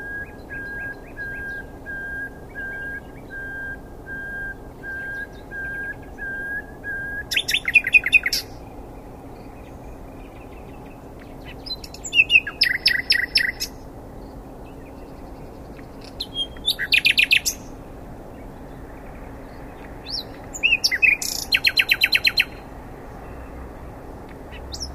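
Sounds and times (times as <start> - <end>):
Common nightingale Luscinia megarhynchos song: 0.0 - 24.9.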